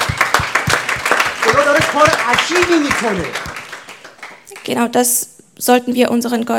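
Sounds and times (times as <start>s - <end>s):
audience applause: 0.0s - 4.8s
speech: 2.0s - 3.5s, 4.7s - 6.5s.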